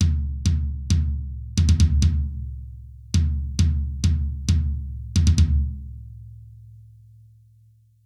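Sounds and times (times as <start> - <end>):
low tom drum: 0.0 - 5.9.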